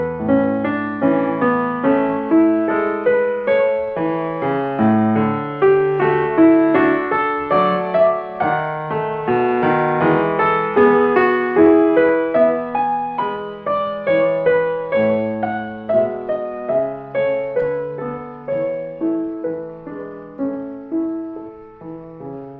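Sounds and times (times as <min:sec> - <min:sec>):
classical prelude in F sharp minor: 0:00.0 - 0:22.5.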